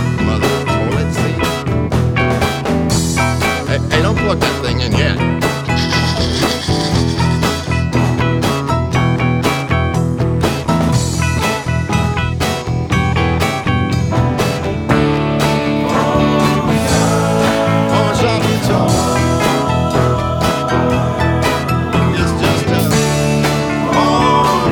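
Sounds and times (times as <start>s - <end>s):
pawnshop guitar playing americana: 0.0s - 24.6s.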